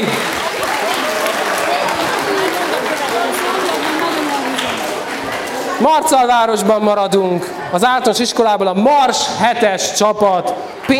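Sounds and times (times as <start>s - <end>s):
audience applause: 0.0s - 6.4s
speech: 5.8s - 10.9s.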